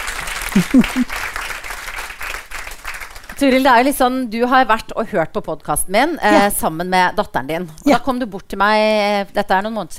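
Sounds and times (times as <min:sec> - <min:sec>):
audience clapping: 0:00.0 - 0:03.6
laughter: 0:00.6 - 0:01.1
speech: 0:00.6 - 0:01.4, 0:03.4 - 0:09.9.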